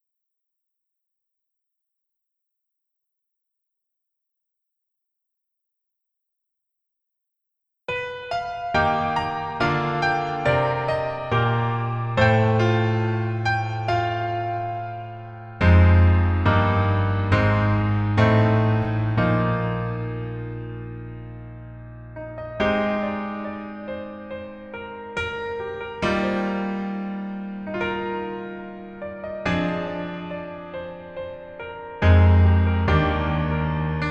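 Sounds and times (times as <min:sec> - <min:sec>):
piano melody backing track: 0:07.9 - 0:34.0.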